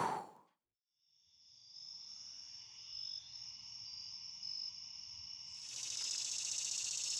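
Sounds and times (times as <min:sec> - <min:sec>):
cicadas: 0:03.1 - 0:07.1.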